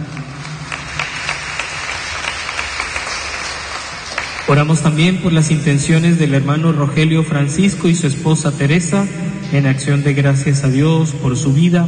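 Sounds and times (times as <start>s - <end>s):
audience clapping: 0.0s - 5.4s
speech: 4.5s - 11.8s.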